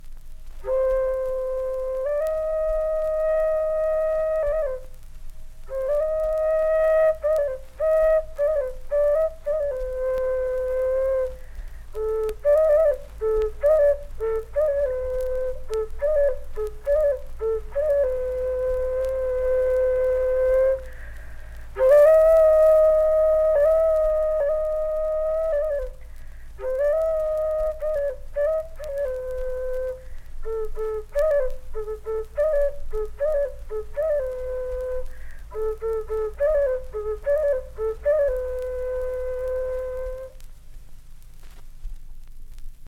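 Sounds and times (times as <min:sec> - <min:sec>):
nose flute music: 0:00.0 - 0:40.5.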